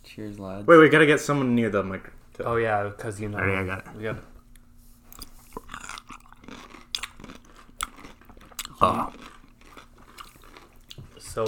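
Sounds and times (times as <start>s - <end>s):
speech: 0.2s - 4.3s
crunchy chewing of bread and butter: 4.5s - 11.4s.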